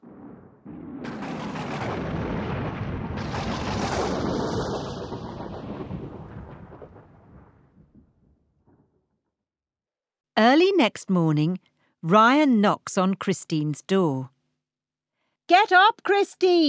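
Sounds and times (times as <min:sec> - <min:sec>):
thunder during a big storm: 0:00.0 - 0:09.1
speech: 0:10.4 - 0:14.4, 0:15.5 - 0:16.6.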